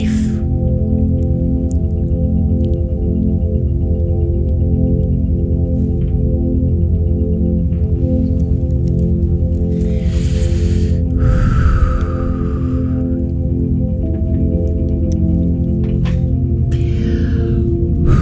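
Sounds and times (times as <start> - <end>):
slow deep breaths in and out: 0.0 - 0.6, 9.6 - 13.6, 16.1 - 18.2
steady sustained musical drone: 0.0 - 18.2.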